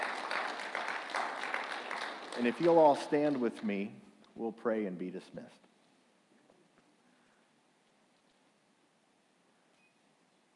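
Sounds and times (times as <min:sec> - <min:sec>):
audience applause: 0:00.0 - 0:03.6
speech: 0:02.4 - 0:05.6.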